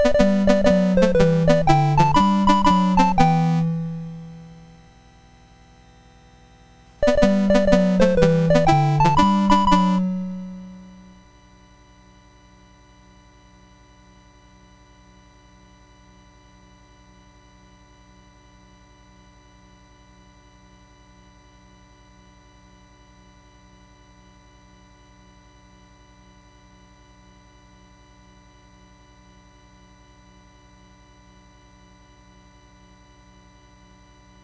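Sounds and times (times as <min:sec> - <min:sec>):
chiptune music on a MOS6581R2 SID chip: 0:00.0 - 0:04.7, 0:07.0 - 0:11.2.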